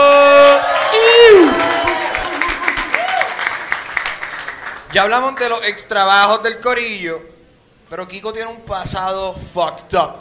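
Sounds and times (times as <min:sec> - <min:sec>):
audience applause and cheering: 0:00.0 - 0:05.5
speech: 0:05.0 - 0:10.2.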